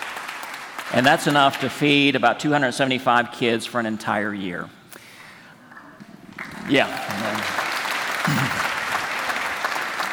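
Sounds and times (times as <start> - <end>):
speech: 0.9 - 4.8, 6.7 - 7.5
audience clapping: 6.9 - 10.1.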